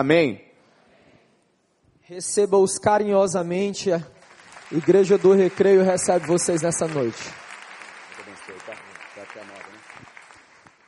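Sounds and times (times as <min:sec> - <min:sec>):
speech: 0:00.0 - 0:00.5, 0:02.1 - 0:07.4
audience applause: 0:04.2 - 0:10.8.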